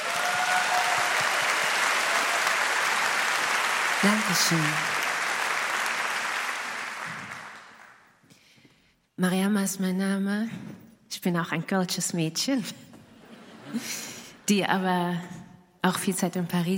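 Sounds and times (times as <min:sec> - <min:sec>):
audience applause: 0:00.0 - 0:08.1
speech: 0:04.0 - 0:05.0, 0:09.2 - 0:12.8, 0:13.7 - 0:16.7.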